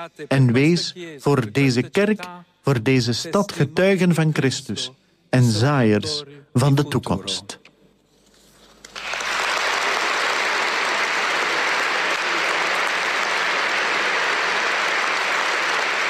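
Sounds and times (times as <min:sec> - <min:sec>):
speech: 0:00.0 - 0:07.6
large applause for Pope Leo XIV in the cathedral of Naples: 0:08.8 - 0:16.0.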